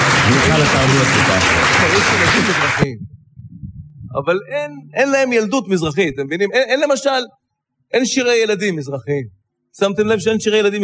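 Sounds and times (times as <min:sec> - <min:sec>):
audience applause: 0:00.0 - 0:02.9
speech: 0:00.6 - 0:03.2, 0:04.1 - 0:10.8.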